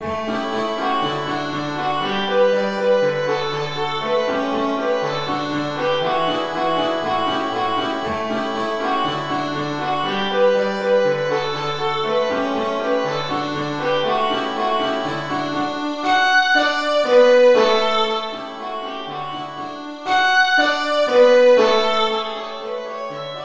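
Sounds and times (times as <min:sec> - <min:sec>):
violin: 0:00.0 - 0:23.4.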